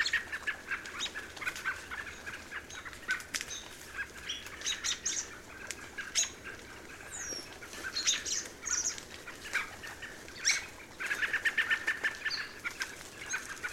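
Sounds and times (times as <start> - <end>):
American robin: 0.0 - 13.7.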